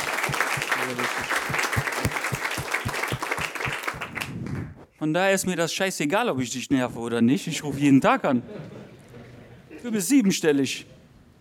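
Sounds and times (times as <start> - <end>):
audience applause: 0.0 - 4.4
speech: 0.3 - 2.4, 5.0 - 8.8, 9.8 - 11.0.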